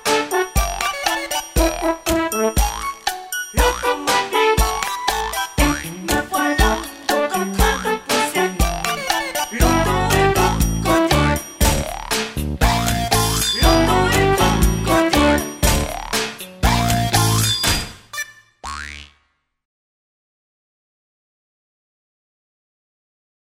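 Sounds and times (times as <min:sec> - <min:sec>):
instrumental music: 0:00.0 - 0:18.6.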